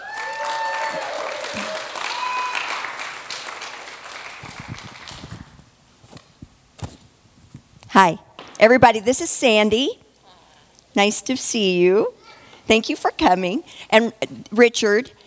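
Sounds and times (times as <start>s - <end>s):
audience clapping: 0.0s - 5.6s
speech: 8.0s - 10.0s, 11.0s - 15.2s.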